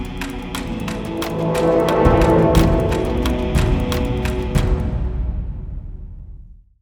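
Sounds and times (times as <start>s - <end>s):
musical stinger: 0.6s - 5.3s.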